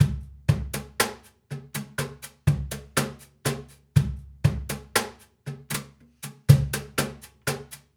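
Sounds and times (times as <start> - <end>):
Cajun percussion and drums: 0.0 - 7.9.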